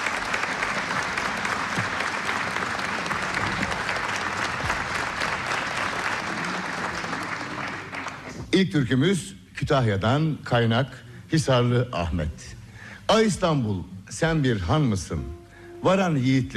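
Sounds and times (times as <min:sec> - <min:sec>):
audience applause for choir and conductor: 0:00.0 - 0:08.4
speech: 0:08.6 - 0:16.5.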